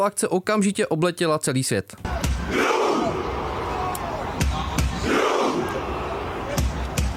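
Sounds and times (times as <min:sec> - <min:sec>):
speech: 0:00.0 - 0:02.8
football fans chanting in unison: 0:02.0 - 0:07.1
people shouting: 0:02.1 - 0:07.1
people clapping: 0:03.6 - 0:07.1.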